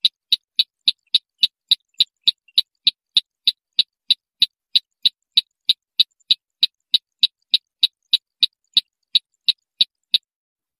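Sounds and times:
white-breasted waterhen train of sharp clicks: 0.0s - 10.3s.

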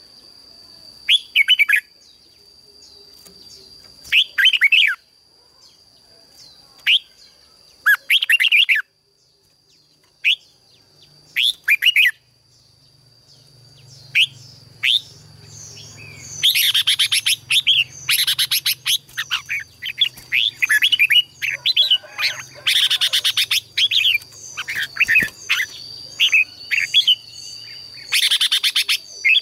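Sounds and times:
red-whiskered bulbul song: 0.0s - 29.4s.

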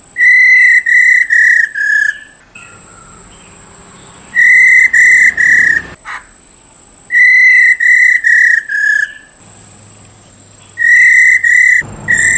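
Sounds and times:
Black-throated laughingthrush whistling: 0.1s - 6.4s, 7.1s - 12.3s.

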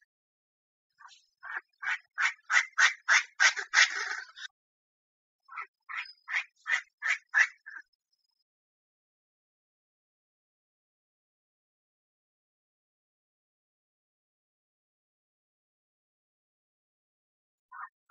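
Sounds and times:
Chinese francolin calling: 1.0s - 4.5s, 5.5s - 7.9s.

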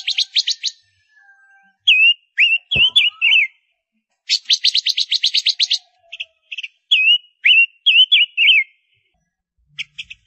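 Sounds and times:
Gouldian finch singing: 0.0s - 9.1s, 9.7s - 10.2s.

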